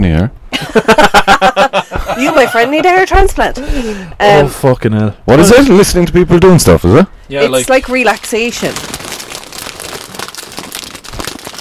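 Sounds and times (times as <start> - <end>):
speech: 0.2 - 9.1
laughter: 0.5 - 3.1
business socks rustling: 8.0 - 11.6.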